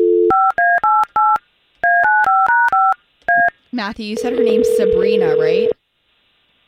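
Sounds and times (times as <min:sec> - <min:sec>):
telephone dialing tones: 0:00.0 - 0:03.5, 0:04.2 - 0:05.7
speech: 0:03.8 - 0:05.8.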